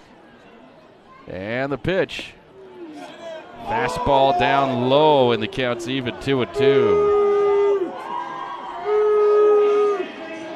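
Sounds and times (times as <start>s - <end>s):
speech: 1.2s - 2.4s, 3.6s - 7.2s
baseball crowd booing: 2.8s - 10.5s.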